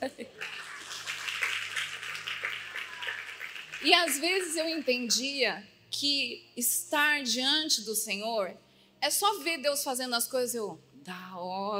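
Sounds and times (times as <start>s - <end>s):
crowd applause: 0.2s - 5.0s
speech: 3.8s - 11.7s.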